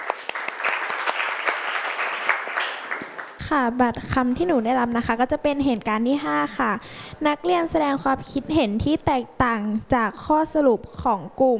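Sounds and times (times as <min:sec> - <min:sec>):
classroom applause: 0:00.0 - 0:03.4
speech: 0:03.5 - 0:11.5.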